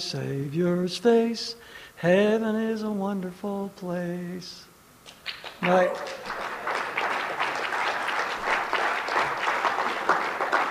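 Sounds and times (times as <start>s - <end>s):
speech: 0.0s - 4.7s, 5.6s - 6.4s
audience applause: 5.2s - 10.6s.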